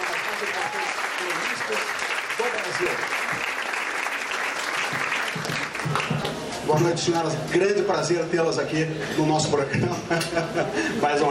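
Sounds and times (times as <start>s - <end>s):
audience applause: 0.0s - 6.6s
speech: 0.4s - 3.4s, 6.7s - 11.3s
laughter: 9.7s - 11.3s.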